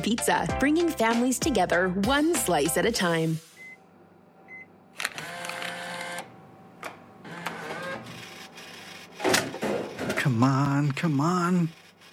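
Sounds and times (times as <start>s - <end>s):
speech: 0.0s - 3.5s, 10.3s - 11.8s
vending machine dispensing two items: 4.5s - 11.6s.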